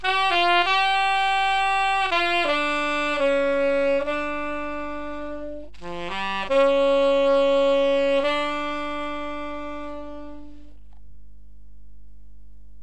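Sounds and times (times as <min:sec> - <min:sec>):
saxophone: 0:00.0 - 0:10.8.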